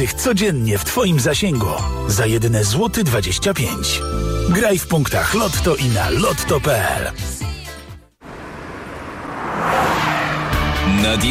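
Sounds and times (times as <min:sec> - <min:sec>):
speech: 0:00.0 - 0:07.4, 0:11.0 - 0:11.3
Honda HR-V tire squeal: 0:08.3 - 0:11.3.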